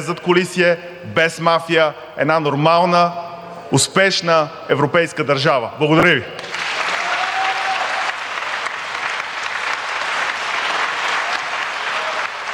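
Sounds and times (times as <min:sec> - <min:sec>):
speech: 0:00.0 - 0:06.6
audience applause: 0:06.4 - 0:12.5.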